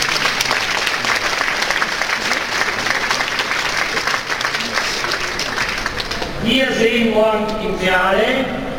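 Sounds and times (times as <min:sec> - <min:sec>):
game show audience applause: 0:00.0 - 0:06.4
speech: 0:06.5 - 0:08.6.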